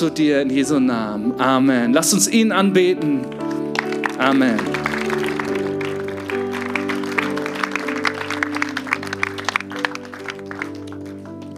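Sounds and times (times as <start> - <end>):
speech: 0.0 - 3.6, 4.2 - 5.2
sustained warm keyboard chords: 0.0 - 11.5
audience applause: 3.3 - 11.5.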